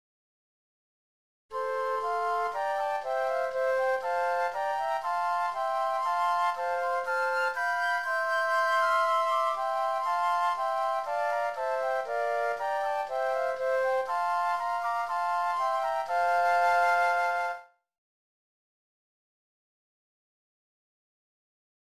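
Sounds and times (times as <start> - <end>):
flutes: 1.5 - 17.8.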